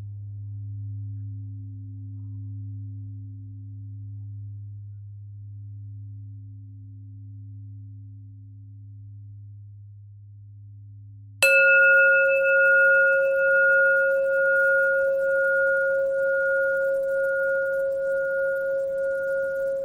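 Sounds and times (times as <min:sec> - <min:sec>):
bell: 0:11.4 - 0:19.8.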